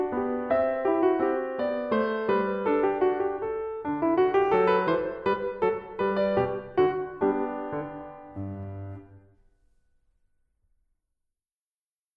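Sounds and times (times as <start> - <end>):
minuet: 0.0 - 9.3.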